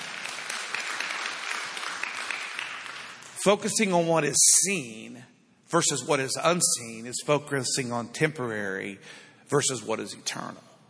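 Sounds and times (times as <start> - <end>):
audience applause: 0.0 - 3.3
speech: 3.4 - 10.7.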